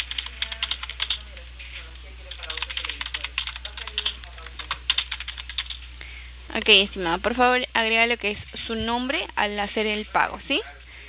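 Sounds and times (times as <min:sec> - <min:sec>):
typing on a computer keyboard: 0:00.0 - 0:01.2, 0:02.3 - 0:05.8
speech: 0:06.6 - 0:10.8.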